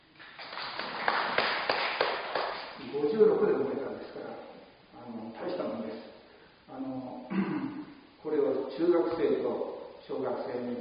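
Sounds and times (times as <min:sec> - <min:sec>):
hand clapping: 0:00.2 - 0:02.9
speech: 0:03.0 - 0:06.1, 0:06.7 - 0:10.7.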